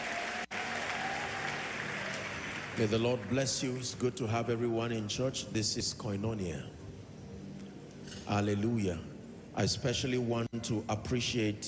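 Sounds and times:
church congregation clapping hands during a service: 0.0 - 4.0
speech: 2.8 - 6.8, 8.3 - 11.6.

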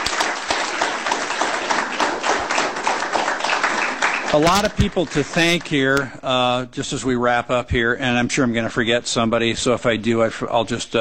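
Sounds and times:
audience applause: 0.0 - 6.0
speech: 4.3 - 10.9.

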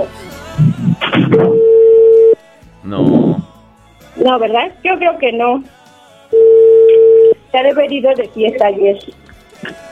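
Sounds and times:
speech: 0.0 - 1.7, 2.9 - 3.3, 4.2 - 5.8, 7.5 - 9.8
telephone ringback tone on an outgoing call: 1.3 - 2.4, 6.4 - 7.4.

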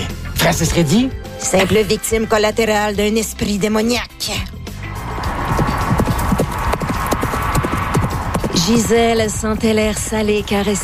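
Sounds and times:
speech: 0.4 - 4.6, 8.7 - 10.8
horse hooves clip-clopping: 5.0 - 10.8.

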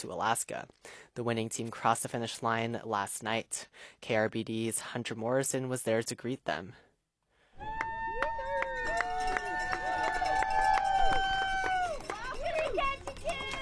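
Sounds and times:
speech: 0.0 - 6.8
spectators cheering at a boat harbor: 7.6 - 13.5.

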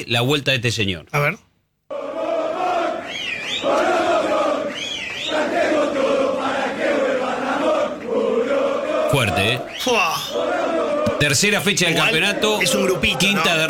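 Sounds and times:
speech: 0.0 - 1.5, 9.1 - 10.6, 11.2 - 13.6
football fans shouting and chanting in club hall: 1.9 - 13.6
whistles: 2.9 - 5.8, 9.2 - 10.5.

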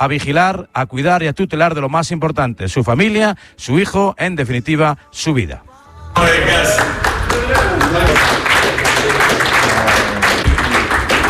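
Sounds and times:
speech: 0.0 - 7.0
teammates applauding: 6.2 - 11.2.

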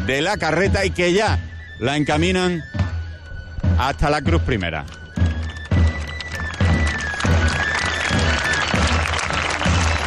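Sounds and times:
speech: 0.0 - 2.8, 3.8 - 5.0
rhythmic hand clapping (palmas): 4.8 - 10.0.

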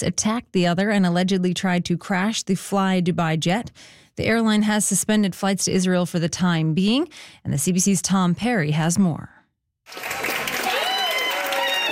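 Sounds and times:
speech: 0.0 - 10.3
families cheering and clapping at Ben Gurion Airport in Tel Aviv: 9.9 - 11.8.

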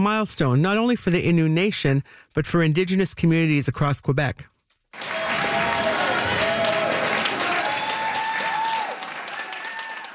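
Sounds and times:
speech: 0.0 - 5.1
large crowd applauding: 5.0 - 10.1.

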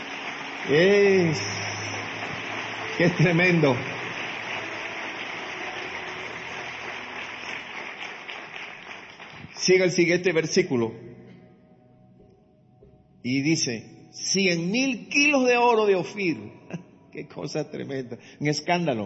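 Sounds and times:
audience applause: 0.0 - 10.0
speech: 0.7 - 1.8, 3.0 - 3.9, 9.6 - 11.1, 13.2 - 19.0.

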